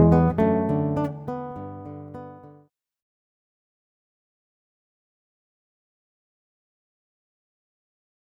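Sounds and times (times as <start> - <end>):
guitar solo: 0.0 - 2.5.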